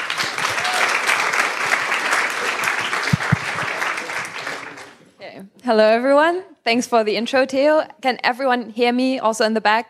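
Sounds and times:
audience applause: 0:00.0 - 0:05.0
speech: 0:05.7 - 0:09.8.

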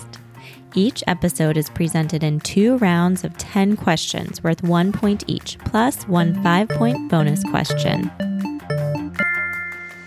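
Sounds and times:
speech: 0:00.7 - 0:08.3
quiz timer chime: 0:06.2 - 0:10.0.

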